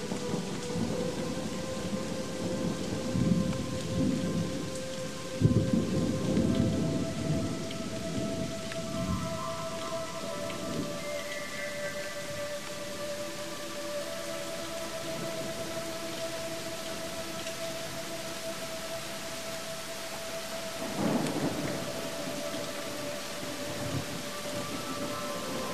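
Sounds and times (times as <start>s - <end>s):
rain: 0.0s - 25.7s
relaxation music: 0.0s - 25.7s.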